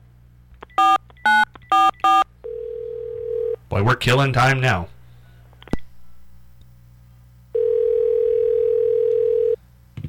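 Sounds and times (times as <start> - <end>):
telephone line tone during a call attempt: 0.8 - 3.6, 7.5 - 9.6
speech: 3.7 - 4.9.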